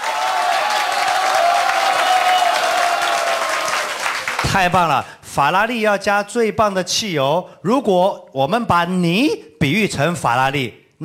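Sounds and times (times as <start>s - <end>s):
audience applause: 0.0s - 4.6s
speech: 4.5s - 11.0s.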